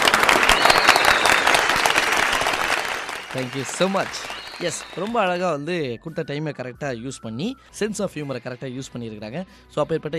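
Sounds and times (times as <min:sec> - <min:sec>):
crowd applause: 0:00.0 - 0:05.4
speech: 0:03.3 - 0:10.1.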